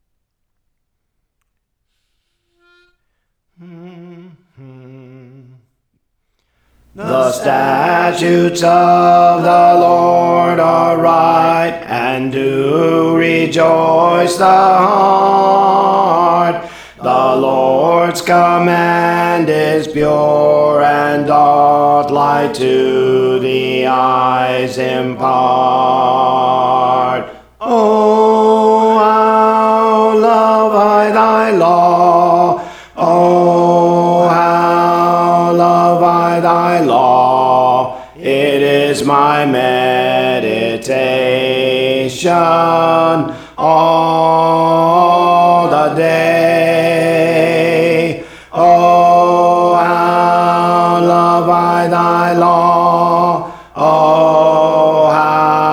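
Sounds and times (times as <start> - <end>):
alto voice singing songs: 3.6 - 5.6, 6.8 - 55.7.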